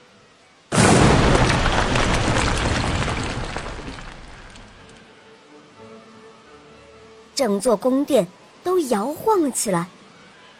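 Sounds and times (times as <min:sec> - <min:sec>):
thunder crack and rumble: 0:00.7 - 0:04.9
speech: 0:07.4 - 0:10.0.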